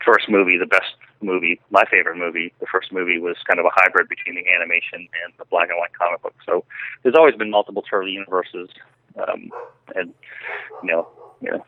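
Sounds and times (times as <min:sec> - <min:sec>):
speech: 0:00.1 - 0:11.6
German Shepherd dog barking: 0:09.5 - 0:11.6.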